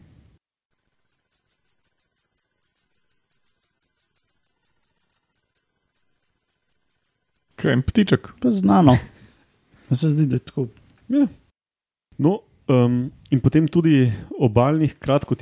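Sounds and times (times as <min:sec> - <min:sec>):
predatory bush-cricket calling with short high-pitched buzzy chirps: 0:00.8 - 0:11.6
speech: 0:07.6 - 0:09.2, 0:09.9 - 0:11.4, 0:12.2 - 0:15.4.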